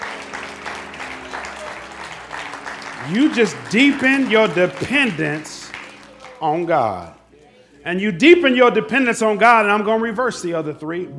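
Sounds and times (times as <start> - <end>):
crowd clapping in a reverberant room: 0.0 - 7.3
speech: 3.1 - 5.6, 6.4 - 7.2, 7.8 - 11.1.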